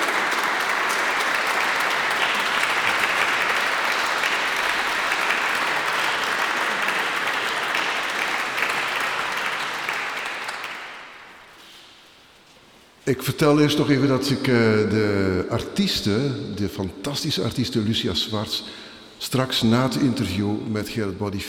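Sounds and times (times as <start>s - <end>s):
warm applause from church audience: 0.0s - 11.7s
speech: 13.1s - 21.4s.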